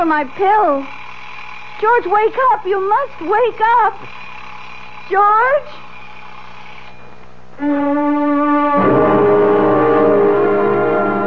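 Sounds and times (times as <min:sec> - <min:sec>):
speech: 0:00.0 - 0:01.0, 0:01.8 - 0:04.2, 0:05.1 - 0:05.8, 0:07.6 - 0:09.1
alarm buzzing: 0:07.6 - 0:11.2.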